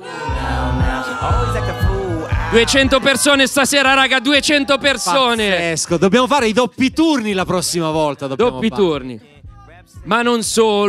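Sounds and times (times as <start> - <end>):
audience shouting protest cries: 0.0 - 5.6
speech: 2.5 - 9.4, 10.0 - 10.8.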